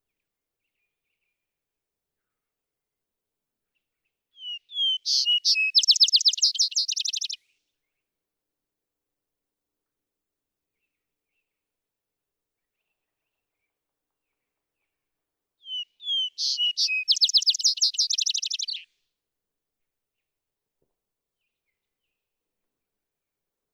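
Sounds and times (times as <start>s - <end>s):
Vesper sparrow song with whistles and trill: 4.4s - 7.5s, 15.6s - 18.9s.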